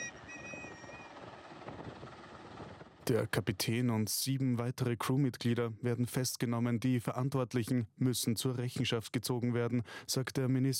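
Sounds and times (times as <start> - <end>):
helicopter flying: 0.0 - 3.3
speech: 3.1 - 10.7.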